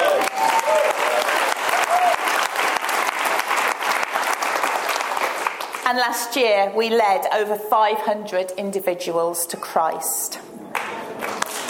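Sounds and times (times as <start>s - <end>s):
audience applause: 0.0s - 5.8s, 10.7s - 11.6s
speech: 5.9s - 10.5s.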